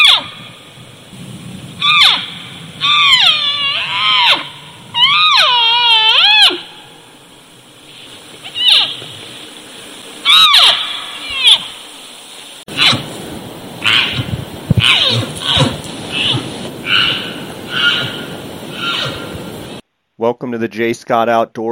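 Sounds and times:
elk bugles: 0.0 - 19.8
speech: 20.4 - 21.6.

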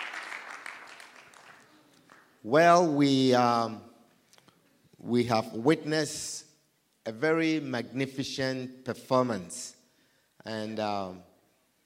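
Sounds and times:
crowd applauding: 0.0 - 2.4
speech: 2.4 - 3.9, 5.0 - 6.5, 7.1 - 9.8, 10.4 - 11.3.

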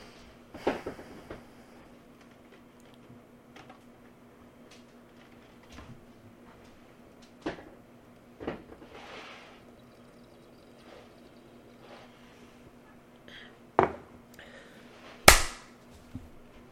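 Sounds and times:
low steady hum: 0.0 - 16.7
hand clap into the microphone: 15.3 - 15.7.

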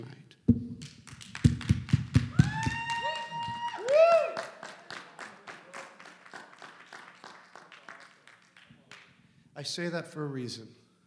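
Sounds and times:
audience clapping: 0.8 - 9.2
whoops and cheers: 2.2 - 4.8
speech: 9.6 - 10.8.

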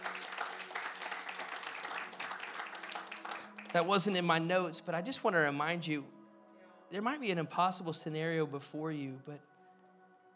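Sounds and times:
audience clapping hands: 0.0 - 4.5
speech: 3.7 - 6.2, 6.9 - 9.5.

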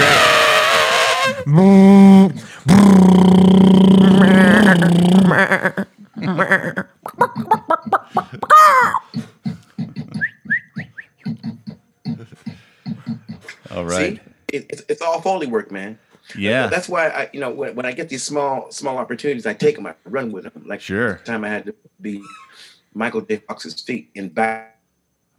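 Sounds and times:
breathy laughter: 0.0 - 10.3, 11.2 - 13.7
voice imitating an elephant: 0.0 - 10.5
speech: 1.5 - 1.9, 15.4 - 22.4, 23.0 - 24.7.

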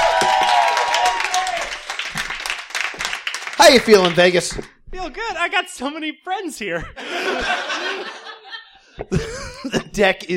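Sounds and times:
high cheer or whistle: 0.0 - 1.9
audience applauding: 0.0 - 4.5
speech: 3.6 - 8.2, 9.0 - 10.3
laughter: 6.8 - 9.8.

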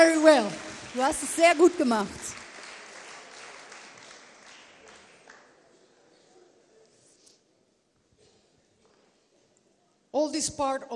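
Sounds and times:
speech: 0.0 - 2.4, 10.2 - 10.9
audience applause: 0.0 - 5.7.

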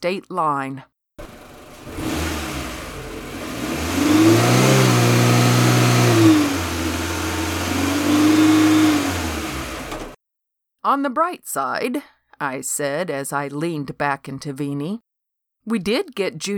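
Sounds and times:
speech: 0.0 - 0.9, 10.8 - 15.0, 15.6 - 16.5
car engine revving and driving off: 1.2 - 10.2.

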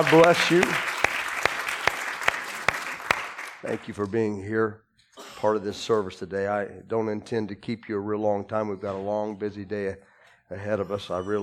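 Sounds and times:
speech: 0.0 - 0.9, 3.6 - 4.8, 5.4 - 11.4
audience applause welcoming visitors: 0.0 - 3.9.

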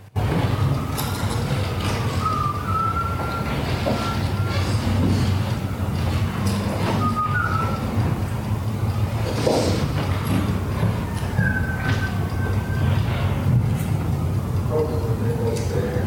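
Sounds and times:
faint wailing siren: 0.0 - 8.1, 10.4 - 16.0
steady low rumble of outdoor noise: 0.0 - 16.0
person whistling short phrases: 2.1 - 4.6, 6.9 - 7.9, 11.4 - 12.9.

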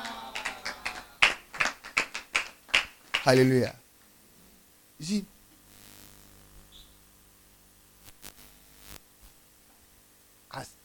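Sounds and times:
hand clapping: 0.0 - 3.5
speech: 3.2 - 3.8, 5.0 - 5.3.

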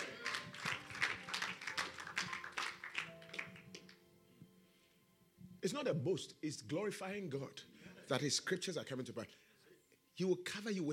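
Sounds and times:
audience clapping: 0.0 - 4.0
speech: 5.6 - 9.4, 10.2 - 10.9.

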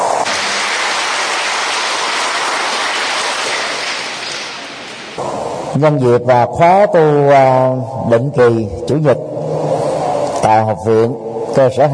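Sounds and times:
loud audience applause: 0.0 - 5.2
speech: 5.8 - 9.4, 10.4 - 11.9.

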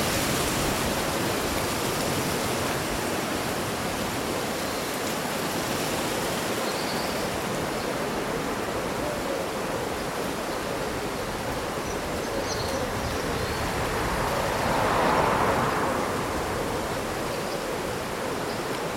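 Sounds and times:
summer wind rustling through leaves: 0.0 - 18.9.

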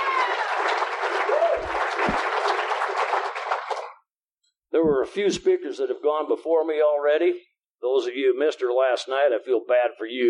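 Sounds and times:
audience applause: 0.0 - 4.0
speech: 5.1 - 10.2.

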